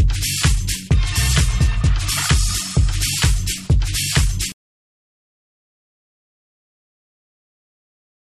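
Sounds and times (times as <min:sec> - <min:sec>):
instrumental mix: 0:00.0 - 0:04.6.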